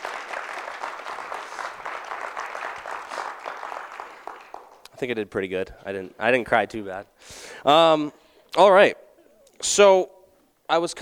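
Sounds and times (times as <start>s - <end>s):
audience clapping: 0.0s - 5.2s
speech: 5.0s - 9.0s, 9.6s - 11.0s.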